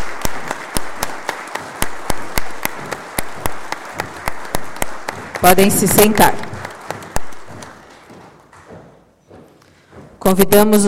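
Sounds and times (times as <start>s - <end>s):
audience applause: 0.0s - 8.6s
speech: 5.4s - 6.5s, 10.3s - 10.8s.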